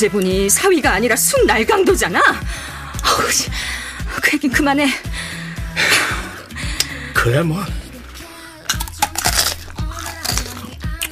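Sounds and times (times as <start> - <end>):
speech: 0.0 - 5.9, 7.2 - 7.8
soft chewing of tanghulu: 7.8 - 11.1
biting crunchy tanghulu candied fruit sugar shell: 8.6 - 11.1.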